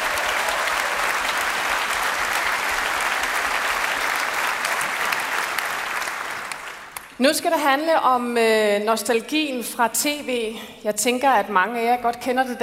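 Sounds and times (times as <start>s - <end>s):
crowd applause: 0.0s - 7.0s
speech: 7.2s - 12.6s.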